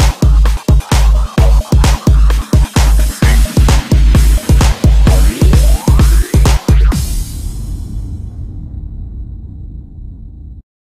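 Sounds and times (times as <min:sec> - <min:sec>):
breakbeat remix: 0:00.0 - 0:08.3.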